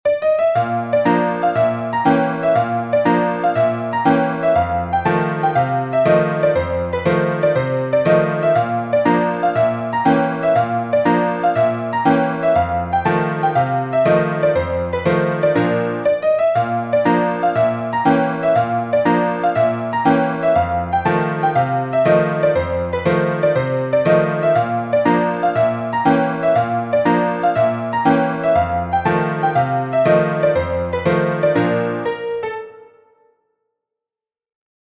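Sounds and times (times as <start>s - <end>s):
piano: 0.0s - 33.6s.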